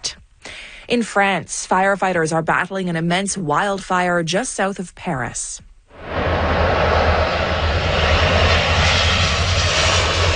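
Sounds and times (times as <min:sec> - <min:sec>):
speech: 0:00.9 - 0:05.7
water bomber aircraft flying overhead: 0:05.9 - 0:10.3.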